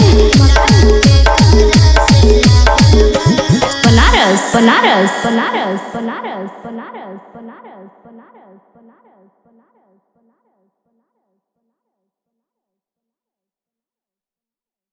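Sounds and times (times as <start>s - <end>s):
Bhojpuri DJ remix song: 0.0s - 7.0s.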